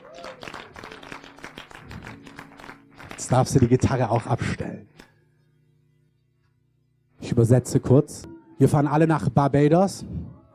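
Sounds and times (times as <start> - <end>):
audience applause: 0.0 - 3.7
speech: 3.2 - 5.0, 7.4 - 10.2.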